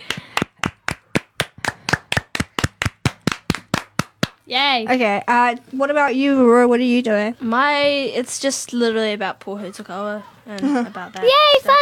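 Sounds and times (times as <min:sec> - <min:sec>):
round of applause: 0:00.0 - 0:04.3
speech: 0:04.5 - 0:11.8.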